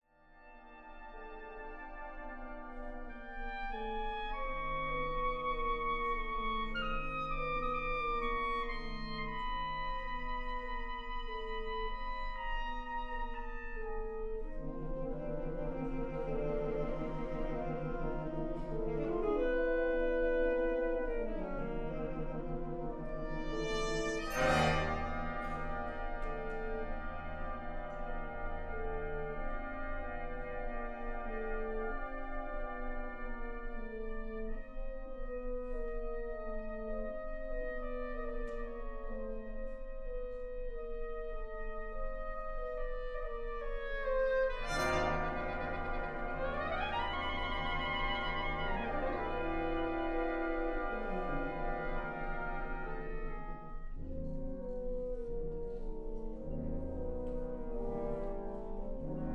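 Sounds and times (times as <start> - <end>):
soprano saxophone: 0.4 - 59.3
fanfare band: 24.1 - 26.1.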